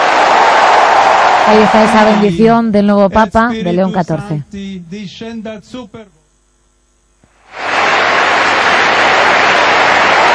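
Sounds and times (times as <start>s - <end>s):
crowd applauding in St. Peter's Square: 0.0s - 2.3s, 7.4s - 10.3s
speech: 1.5s - 6.2s.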